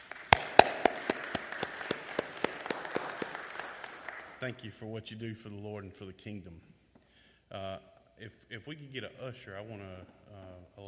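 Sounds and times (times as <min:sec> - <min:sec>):
audience applause: 0:00.0 - 0:04.4
speech: 0:04.4 - 0:06.7, 0:07.5 - 0:10.8.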